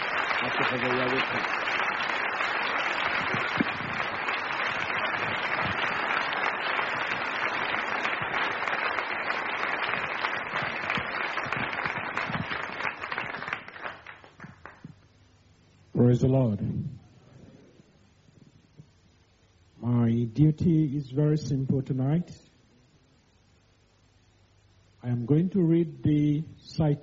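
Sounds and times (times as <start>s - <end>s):
audience clapping hands in welcome at a religious gathering: 0.0s - 15.0s
speech: 0.4s - 1.8s, 16.1s - 16.9s, 20.4s - 22.4s, 25.3s - 27.0s.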